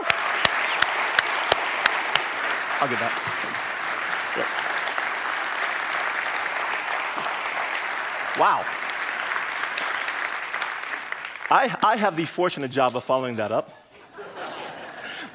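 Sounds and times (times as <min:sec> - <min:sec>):
audience applause: 0:00.0 - 0:12.2
speech: 0:02.8 - 0:03.7, 0:04.4 - 0:04.7, 0:08.4 - 0:08.8, 0:11.5 - 0:13.8
laughter: 0:14.0 - 0:15.3.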